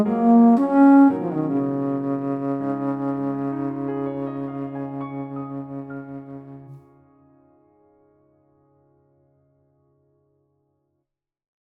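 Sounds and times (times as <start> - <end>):
bass flute: 0.0 - 6.8.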